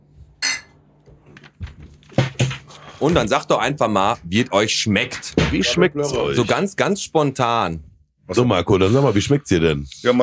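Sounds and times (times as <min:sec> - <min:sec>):
glasses clinking in a toast: 0:00.4 - 0:00.8
tableware rattling: 0:00.4 - 0:00.8
speech: 0:03.0 - 0:10.2.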